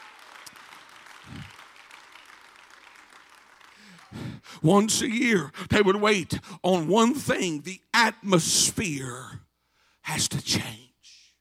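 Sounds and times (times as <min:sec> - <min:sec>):
audience clapping hands: 0:00.0 - 0:04.5
speech: 0:04.1 - 0:09.4, 0:10.1 - 0:10.8.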